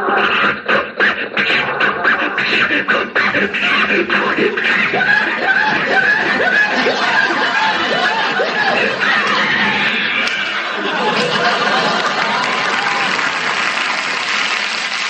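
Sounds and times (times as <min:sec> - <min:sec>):
audience laughing: 0:00.2 - 0:15.0
man imitating a sputtering old car engine: 0:01.6 - 0:07.0
audience applauding: 0:03.5 - 0:15.0.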